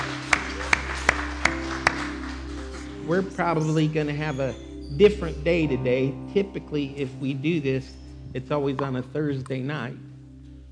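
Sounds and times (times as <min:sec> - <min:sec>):
church congregation hand claps of praise: 0:00.0 - 0:04.4
speech: 0:03.1 - 0:10.1.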